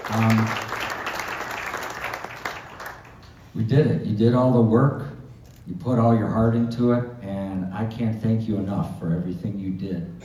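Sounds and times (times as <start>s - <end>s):
crowd of supporters cheering and applauding: 0.0s - 3.2s
speech: 0.1s - 0.6s, 3.6s - 5.1s, 5.7s - 7.1s, 7.8s - 10.2s.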